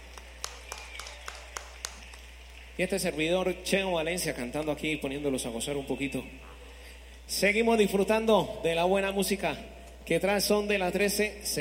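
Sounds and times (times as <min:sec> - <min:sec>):
audience clapping at a live salsa show in tribute to the band's maestro: 0:00.0 - 0:03.4
low constant hum: 0:00.0 - 0:11.5
speech: 0:02.8 - 0:06.6, 0:07.3 - 0:11.5.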